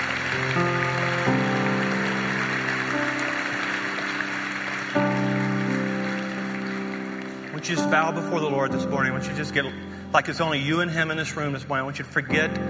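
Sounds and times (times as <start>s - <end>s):
audience applause: 0.0s - 8.7s
speech: 7.6s - 12.6s.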